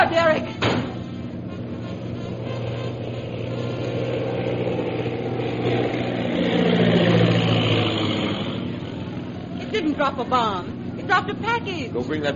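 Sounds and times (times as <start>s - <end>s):
low-flying bomber plane engine droning: 0.0s - 12.3s
speech: 10.2s - 12.3s.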